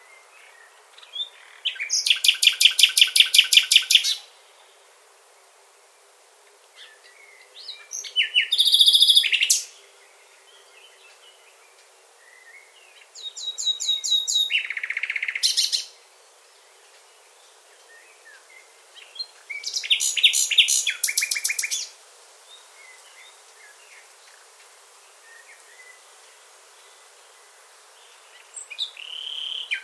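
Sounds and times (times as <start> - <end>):
bird calling with thin whistle and sharp downslurred chirps: 1.2 - 4.2, 7.7 - 9.7, 13.2 - 15.9, 19.5 - 21.9.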